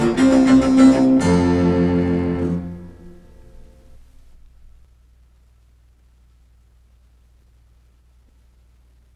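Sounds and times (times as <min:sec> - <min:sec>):
cello sonata: 0:00.0 - 0:04.7.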